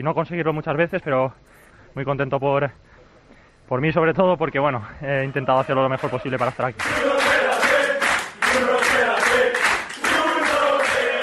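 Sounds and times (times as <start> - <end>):
speech: 0.0 - 2.9, 3.7 - 7.5
teammates cheering and shouting loudly in a locker room: 5.2 - 11.2
teammates clapping in a locker room: 6.0 - 11.2.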